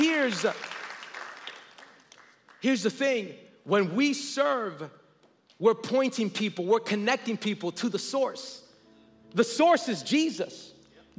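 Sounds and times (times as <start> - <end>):
audience applause: 0.0 - 2.6
speech: 0.2 - 0.8, 2.6 - 5.0, 5.6 - 8.6, 9.3 - 11.1.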